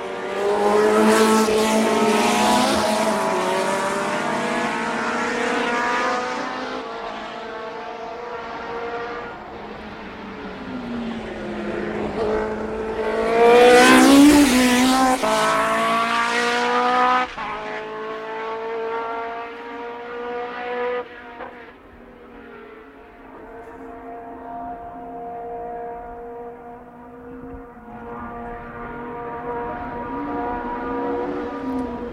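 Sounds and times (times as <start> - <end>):
Formula 1 racing car engines whining through an S-bend: 0.0 - 32.1.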